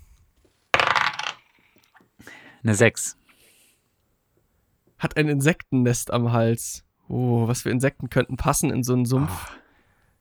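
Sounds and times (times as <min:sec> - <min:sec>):
six-sided die being rolled: 0:00.8 - 0:01.4
speech: 0:02.6 - 0:03.2, 0:05.0 - 0:09.6.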